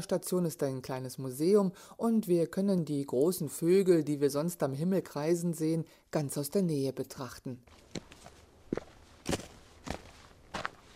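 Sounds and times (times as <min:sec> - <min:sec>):
speech: 0:00.0 - 0:08.1
footsteps climbing a steep path: 0:07.6 - 0:10.9.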